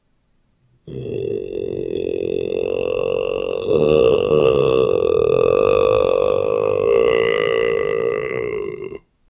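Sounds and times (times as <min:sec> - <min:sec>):
stomach growling and gurgling: 0:00.9 - 0:09.0.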